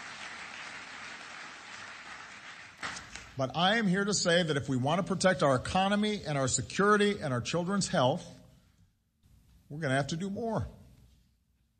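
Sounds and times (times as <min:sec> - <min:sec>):
round of applause: 0:00.0 - 0:03.3
speech: 0:03.4 - 0:08.4, 0:09.7 - 0:10.8.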